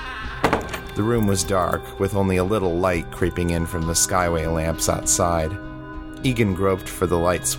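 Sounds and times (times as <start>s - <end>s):
door creaking open and shut: 0.4s - 1.8s
speech: 1.0s - 5.6s, 6.2s - 7.5s.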